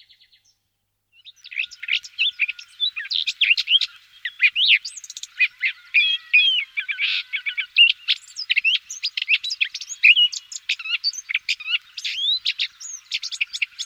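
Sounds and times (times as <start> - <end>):
common whitethroat voice: 1.2 - 13.8.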